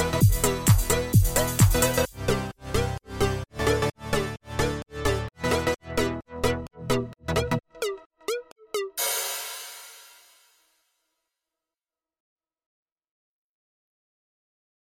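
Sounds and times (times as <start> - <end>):
electro mix: 0.0 - 10.6.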